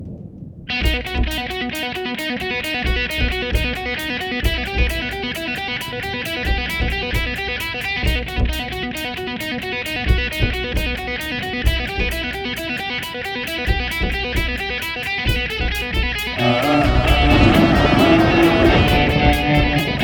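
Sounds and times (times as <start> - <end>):
hip hop music: 0.9 - 20.0.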